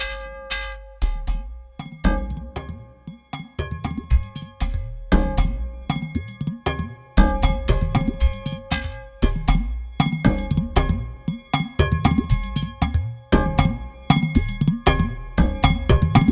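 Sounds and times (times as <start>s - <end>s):
processed percussion: 0.0s - 16.3s.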